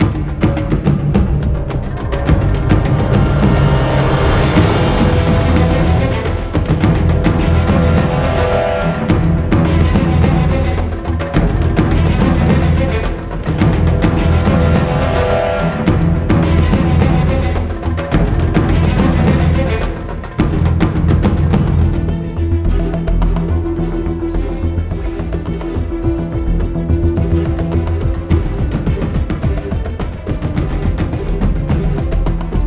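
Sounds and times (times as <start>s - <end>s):
low combat music: 0.0s - 32.6s.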